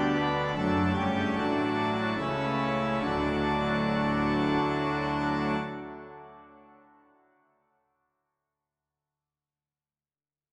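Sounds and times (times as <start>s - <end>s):
organ: 0.0s - 7.0s.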